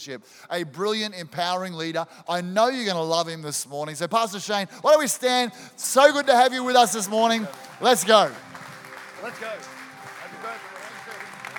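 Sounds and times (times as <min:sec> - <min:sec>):
speech: 0:00.0 - 0:08.5, 0:09.2 - 0:09.8
audience applauding: 0:06.6 - 0:11.5.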